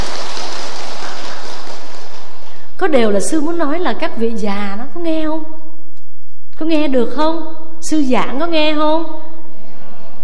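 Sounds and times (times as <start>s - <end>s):
audience applause: 0.0s - 2.7s
speech: 2.8s - 5.6s, 6.6s - 9.2s.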